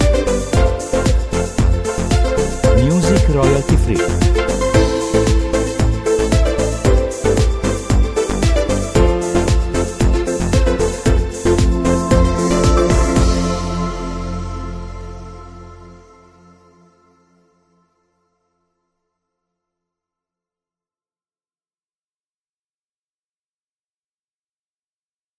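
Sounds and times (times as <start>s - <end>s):
corporate music: 0.0s - 15.8s.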